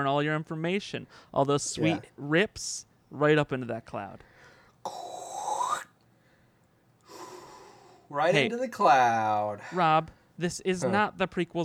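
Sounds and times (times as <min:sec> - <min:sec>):
speech: 0:00.0 - 0:05.1, 0:08.1 - 0:11.6
person imitating Darth Vader breathing: 0:04.8 - 0:05.9, 0:07.1 - 0:08.1.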